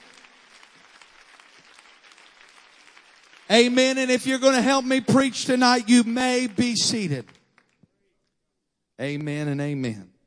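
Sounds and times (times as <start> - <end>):
audience clapping hands: 0.0 - 7.9
speech: 3.5 - 7.4, 9.0 - 10.1.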